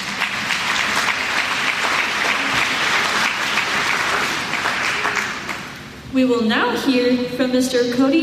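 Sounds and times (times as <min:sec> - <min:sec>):
audience applause: 0:00.0 - 0:05.8
speech: 0:06.2 - 0:08.2.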